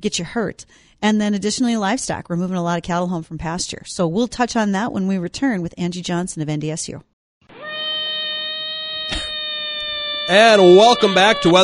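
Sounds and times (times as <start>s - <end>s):
speech: 0.0s - 7.1s, 10.3s - 11.6s
screaming frog call: 7.5s - 11.6s.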